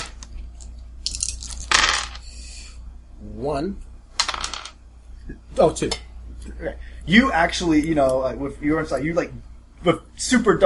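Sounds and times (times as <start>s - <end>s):
dice clattering across a hard surface: 1.0s - 2.2s, 4.2s - 4.8s
speech: 3.4s - 3.9s, 5.6s - 10.6s.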